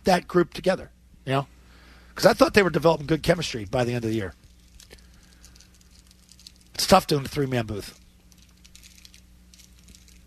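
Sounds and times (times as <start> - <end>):
speech: 0.0 - 1.5, 2.2 - 4.4, 6.9 - 8.0
low steady hum: 0.0 - 10.2
protein bar wrapper crinkling as it is unwrapped: 4.2 - 7.0, 8.0 - 10.2.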